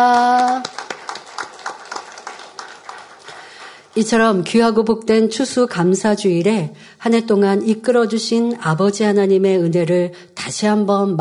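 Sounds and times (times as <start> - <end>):
audience applause: 0.0 - 4.0
speech: 4.0 - 11.1.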